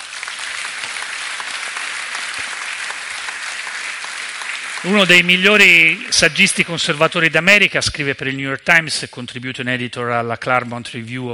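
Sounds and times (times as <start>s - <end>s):
audience applause: 0.0s - 6.8s
speech: 4.8s - 11.3s.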